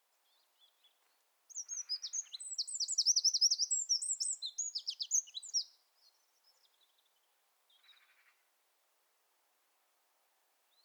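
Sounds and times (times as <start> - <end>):
Eurasian wren song: 1.5 - 5.8.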